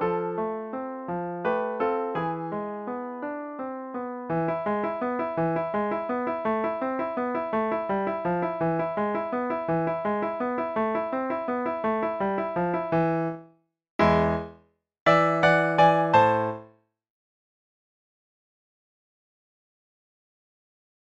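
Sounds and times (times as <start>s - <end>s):
piano piece: 0.0s - 16.8s.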